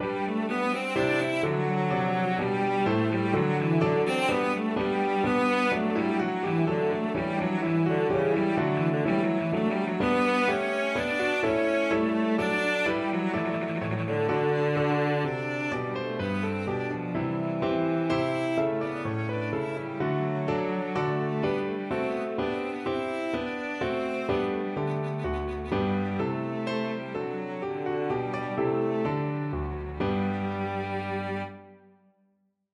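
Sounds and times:
violoncello: 0:00.0 - 0:31.9.

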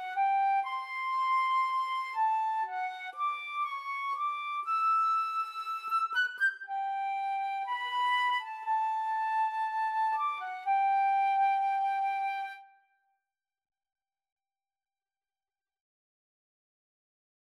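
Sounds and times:
romantic violin and flute duet: 0:00.0 - 0:12.8.

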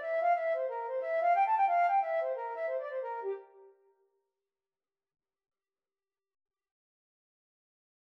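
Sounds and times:
flute melody: 0:00.0 - 0:03.8.

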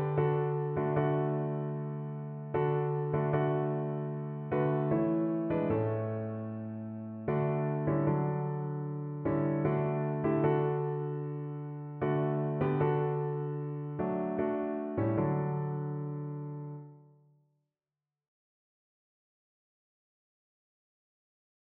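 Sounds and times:
piano piece: 0:00.0 - 0:17.2.

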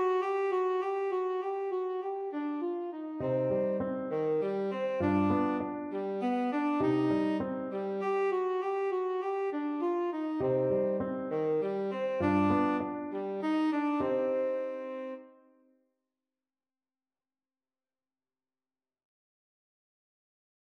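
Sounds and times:
tenor saxophone: 0:00.0 - 0:15.4.

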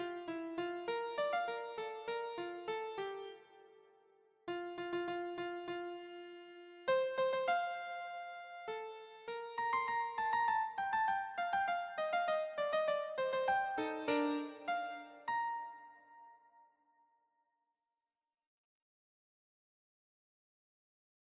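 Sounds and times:
keyboard melody: 0:00.0 - 0:03.9, 0:04.5 - 0:16.4.

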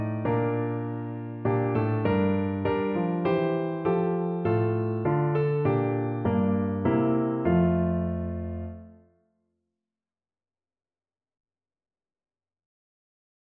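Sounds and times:
piano: 0:00.0 - 0:09.2.

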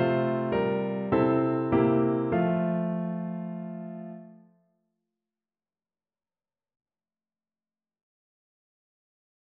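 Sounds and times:
piano: 0:00.0 - 0:04.5.

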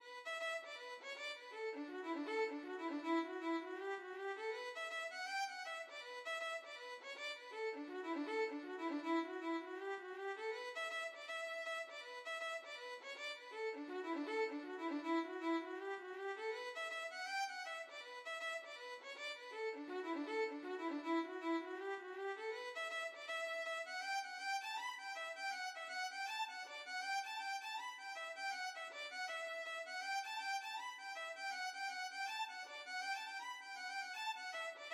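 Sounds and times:
violin melody: 0:00.1 - 0:34.9.

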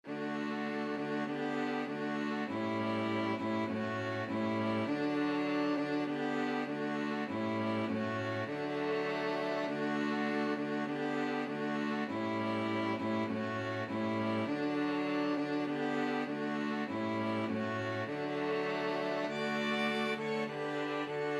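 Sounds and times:
string quartet: 0:00.0 - 0:21.3.

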